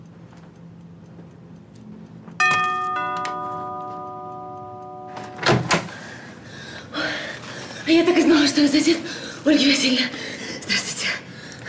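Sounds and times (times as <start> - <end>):
doorbell ringing: 2.4 - 5.9
speech: 7.9 - 10.4.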